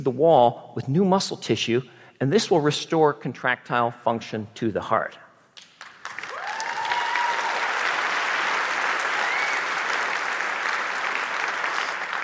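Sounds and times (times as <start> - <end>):
speech: 0.0 - 5.2
audience applause: 5.8 - 12.2.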